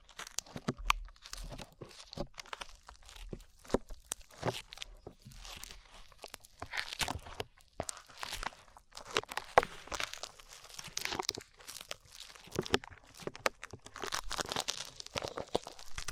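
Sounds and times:
slime being squished and pulled: 0.0 - 16.1.

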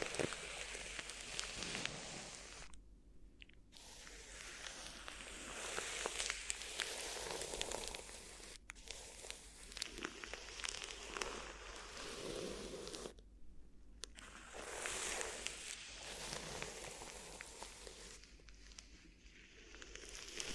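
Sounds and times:
crinkly ear massage rustling and crackling: 0.0 - 2.8, 3.4 - 13.2, 14.0 - 20.5.

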